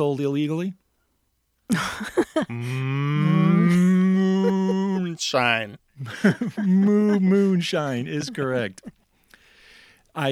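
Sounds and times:
speech: 0.0 - 0.8, 1.7 - 9.0, 10.2 - 10.3
laughter: 1.7 - 9.0
cow mooing: 2.5 - 4.5.

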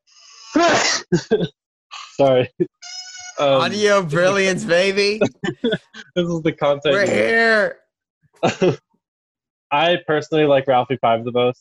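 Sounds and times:
sneeze: 0.6 - 1.1
speech: 0.6 - 1.6, 2.2 - 7.8, 8.4 - 8.8, 9.7 - 11.5.

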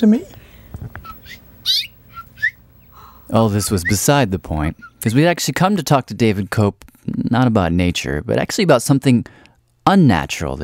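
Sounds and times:
speech: 0.0 - 1.4, 3.3 - 10.6
mother bird calling near her nest: 0.9 - 5.3.

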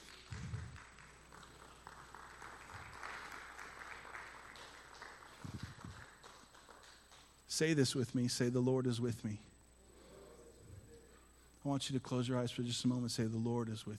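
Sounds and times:
audience round of applause: 0.0 - 7.3
speech: 7.6 - 9.5, 11.6 - 13.9.

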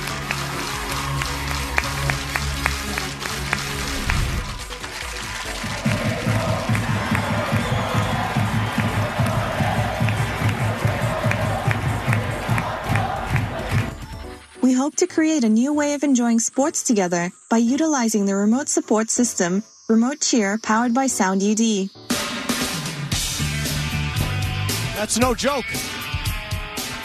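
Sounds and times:
stadium crowd rhythmic clapping: 0.0 - 14.4, 22.5 - 27.0
large stadium crowd chanting: 5.6 - 14.2
speech: 14.9 - 22.1, 25.0 - 26.0.

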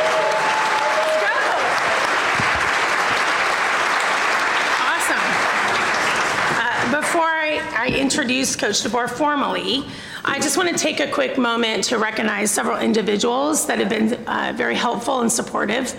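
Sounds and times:
shouts: 0.0 - 2.1
audience applause: 0.0 - 7.2
speech: 8.1 - 15.9.

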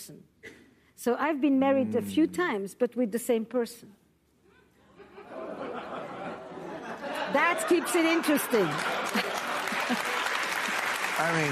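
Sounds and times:
speech: 0.0 - 0.4, 1.0 - 4.0, 7.3 - 10.1, 11.2 - 11.4
laughter: 4.8 - 11.0
audience applause: 7.6 - 11.4.

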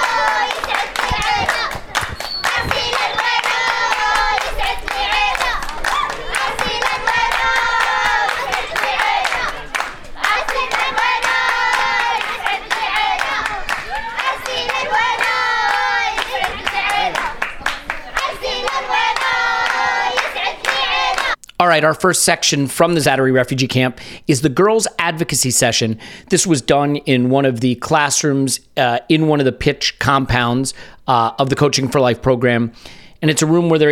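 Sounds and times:
young girls clapping: 0.0 - 21.4
young girls singing: 0.0 - 21.4
speech: 21.8 - 33.9.

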